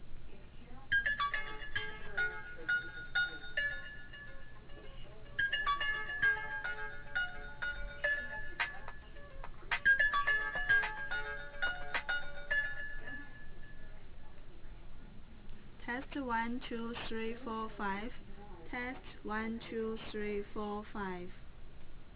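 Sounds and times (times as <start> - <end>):
mobile phone ringtone through a narrow-band line during an echo cancellation test call: 0.9 - 13.9
speech: 16.3 - 18.2, 18.9 - 21.4.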